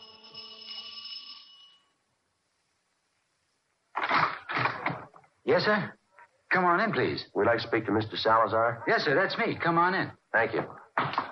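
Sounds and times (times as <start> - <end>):
electronic doorbell chiming: 0.0 - 2.0
loud rough noise bursts: 3.9 - 5.1
speech: 5.5 - 11.2.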